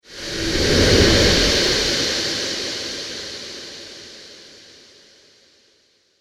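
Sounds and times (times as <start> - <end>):
ghost whoosh: 0.0 - 3.6.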